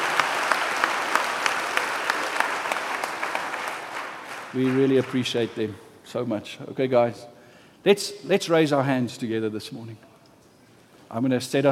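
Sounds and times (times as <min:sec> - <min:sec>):
round of applause: 0:00.0 - 0:05.5
speech: 0:04.5 - 0:10.1, 0:11.1 - 0:11.7.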